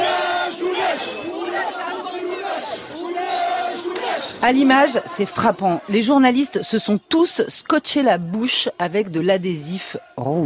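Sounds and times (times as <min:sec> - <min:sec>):
crowd of striking radio workers shouting in protest: 0:00.0 - 0:07.3
speech: 0:04.4 - 0:10.4.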